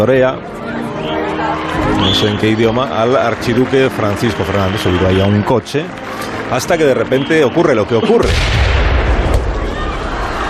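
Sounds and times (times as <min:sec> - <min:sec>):
speech: 0:00.0 - 0:08.8
bomb explosion: 0:08.2 - 0:10.3.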